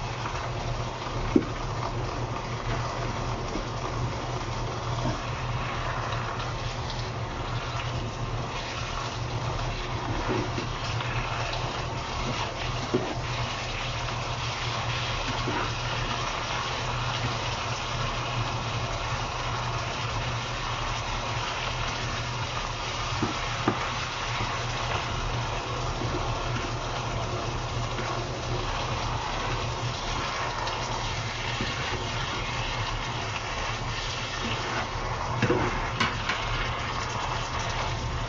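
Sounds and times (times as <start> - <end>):
stir-fried chicken breast and vegetables hissing: 0.0 - 38.2.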